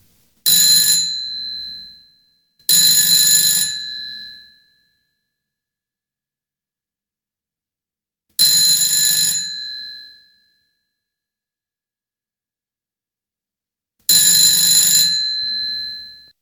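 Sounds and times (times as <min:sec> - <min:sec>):
old landline telephone ringing: 0:00.5 - 0:01.8, 0:02.7 - 0:04.2, 0:08.4 - 0:09.9, 0:14.1 - 0:16.2.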